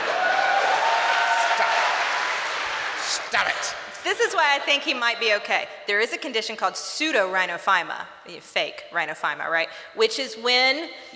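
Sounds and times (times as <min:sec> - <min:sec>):
audience applause: 0:00.0 - 0:03.7
speech: 0:03.3 - 0:11.1.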